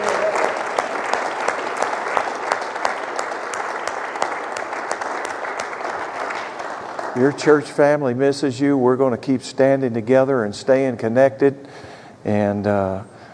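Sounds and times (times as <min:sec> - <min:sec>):
audience applause: 0:00.0 - 0:07.6
speech: 0:07.2 - 0:13.1.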